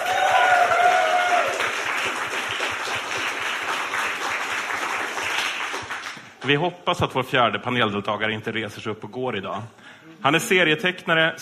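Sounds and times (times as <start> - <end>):
audience applause: 0.0 - 6.4
speech: 6.5 - 11.4.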